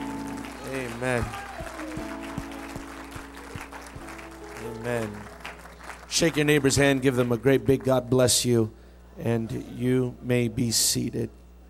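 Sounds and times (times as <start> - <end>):
church congregation clapping hands in praise: 0.0 - 8.0
speech: 0.7 - 2.3, 4.6 - 5.3, 6.1 - 11.4.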